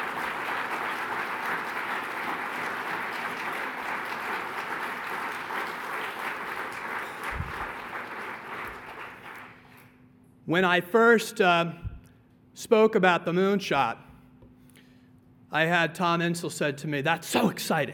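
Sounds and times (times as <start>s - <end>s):
audience applause: 0.0s - 9.7s
speech: 10.5s - 11.8s, 12.6s - 14.0s, 15.5s - 17.9s.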